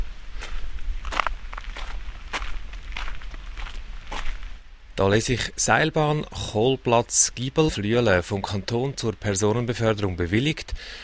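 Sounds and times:
footsteps climbing a small path to a wooden cable car station near Flüelen: 0.0s - 4.6s
speech: 5.0s - 11.0s.

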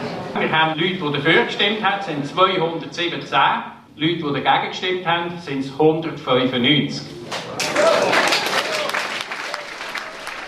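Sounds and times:
speech: 0.4s - 8.3s
restrained applause after a vote: 7.3s - 10.4s.

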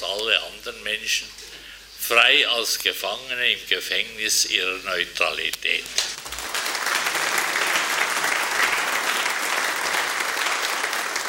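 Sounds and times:
speech: 0.3s - 1.4s, 2.1s - 6.1s
audience applause: 6.2s - 11.2s.

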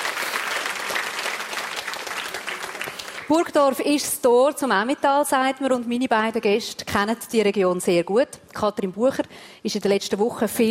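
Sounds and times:
audience applause: 0.0s - 3.3s
speech: 3.3s - 10.6s.

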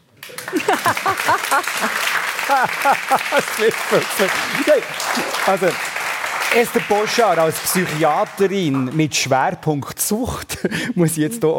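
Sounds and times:
applause: 0.1s - 9.3s
laughter: 0.4s - 5.8s
speech: 0.8s - 11.5s.

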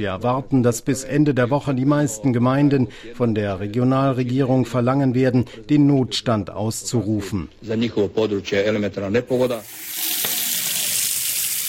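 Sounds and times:
speech: 0.0s - 9.9s
water running from a tap in Kosovo: 9.4s - 11.6s.

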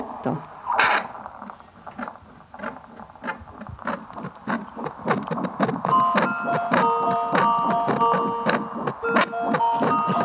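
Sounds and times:
static: 0.0s - 10.2s
speech: 0.2s - 0.5s
heartbeat through a Doppler heart monitor: 1.2s - 10.2s
faint electronic tones: 5.7s - 10.2s.

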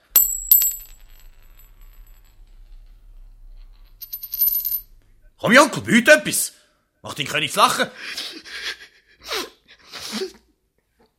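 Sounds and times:
coins jingling: 0.0s - 2.8s, 3.7s - 4.9s
gold coin dropping and clinking: 0.0s - 5.1s
speech: 5.4s - 8.8s.

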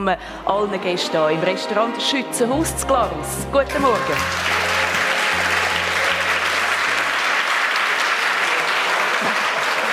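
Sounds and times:
speech: 0.0s - 4.7s
audience applause: 3.7s - 9.9s.

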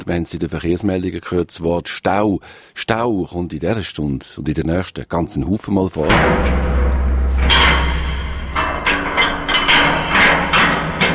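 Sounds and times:
speech: 0.0s - 6.9s
low rumble inside a dam's inspection corridors: 6.1s - 9.7s
ringing clanks and knocks: 6.1s - 11.1s.

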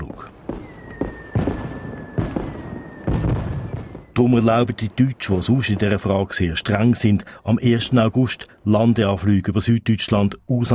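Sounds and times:
fireworks booming with crackling tails: 0.0s - 7.2s
thin steady whistling tone: 0.6s - 4.2s
speech: 4.2s - 10.7s.

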